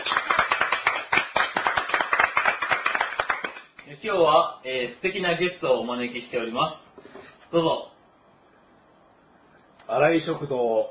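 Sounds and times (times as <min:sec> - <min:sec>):
people clapping: 0:00.0 - 0:03.9
speech: 0:04.0 - 0:06.8, 0:07.5 - 0:07.9, 0:09.9 - 0:10.9.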